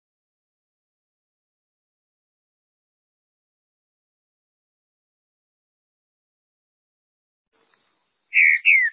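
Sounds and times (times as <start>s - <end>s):
green-winged saltator whistled song: 8.3s - 8.9s.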